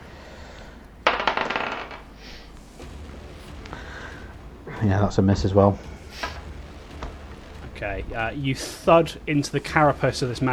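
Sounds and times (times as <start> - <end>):
quiet hum: 0.0 - 10.5
dice clattering onto a hard surface: 1.0 - 2.6
speech: 4.8 - 5.9, 7.8 - 10.5.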